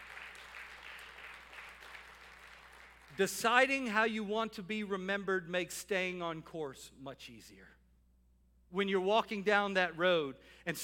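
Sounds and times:
audience clapping: 0.0 - 3.2
speech: 3.2 - 7.8, 8.7 - 10.8.

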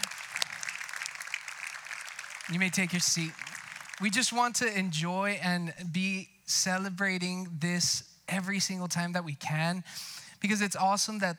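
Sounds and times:
audience applauding new members: 0.0 - 4.3
speech: 2.5 - 3.4, 4.0 - 11.3.

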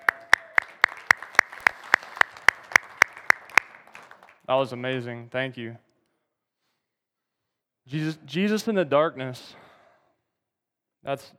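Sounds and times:
audience applause: 0.0 - 4.5
speech: 4.5 - 5.9, 7.9 - 9.6, 11.0 - 11.3.

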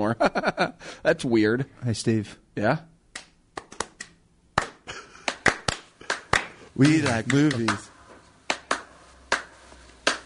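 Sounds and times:
speech: 0.0 - 2.9, 6.8 - 7.9
single clap: 3.1 - 7.9, 8.5 - 10.2.

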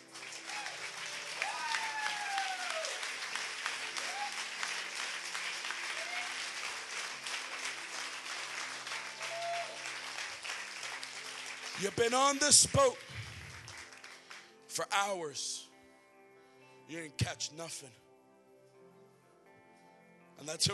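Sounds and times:
audience applause and clapping: 0.0 - 14.5
speech: 11.8 - 13.2, 14.8 - 15.7, 16.9 - 18.0, 20.4 - 20.7.

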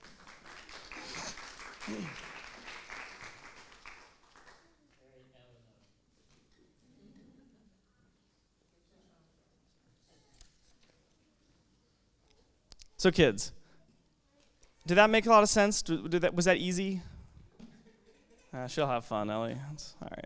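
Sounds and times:
audience applause: 0.0 - 4.7
speech: 1.9 - 2.3, 13.0 - 13.6, 14.9 - 17.1, 18.5 - 20.2.

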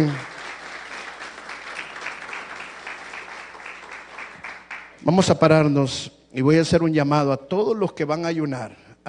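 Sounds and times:
audience applause: 0.0 - 5.0
speech: 5.0 - 9.0.

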